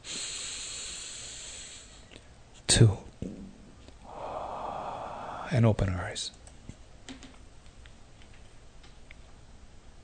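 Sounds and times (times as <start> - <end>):
deep breath in during a guided breathing exercise: 0.0 - 2.1, 4.0 - 5.5
speech: 2.8 - 3.0, 5.5 - 6.4.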